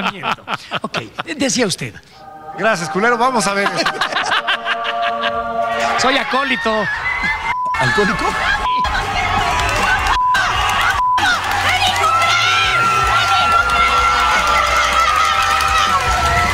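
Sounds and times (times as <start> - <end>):
laughter: 0.0 - 1.7, 3.3 - 16.3
speech: 0.1 - 4.3, 6.0 - 8.5
stadium crowd cheering and shouting: 5.2 - 16.5.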